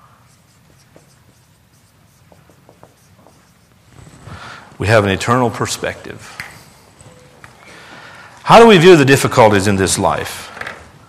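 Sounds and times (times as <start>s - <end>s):
pen or marker scratching while writing: 0.0s - 6.8s
speech: 4.8s - 6.4s, 8.5s - 10.5s.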